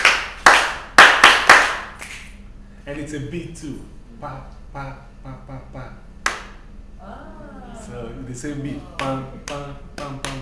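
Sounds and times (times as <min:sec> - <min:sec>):
group clapping hands together in unison: 0:00.0 - 0:02.3, 0:06.2 - 0:06.6, 0:08.9 - 0:10.4
speech: 0:02.9 - 0:06.1, 0:07.0 - 0:10.4.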